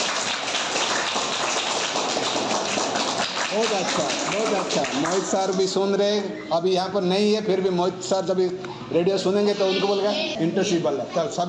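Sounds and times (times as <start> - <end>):
children clapping: 0.0 - 5.8
speech: 3.6 - 11.4.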